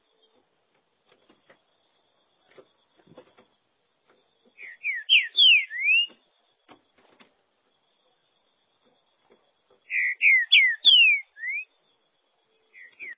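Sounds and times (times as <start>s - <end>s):
green-winged saltator whistled song: 4.6s - 6.2s, 9.9s - 11.7s, 12.7s - 13.1s.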